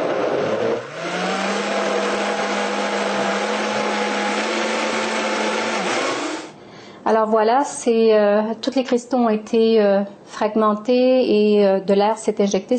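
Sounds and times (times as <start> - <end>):
electric blender mixing a preparation: 0.0 - 6.6
speech: 7.1 - 12.7.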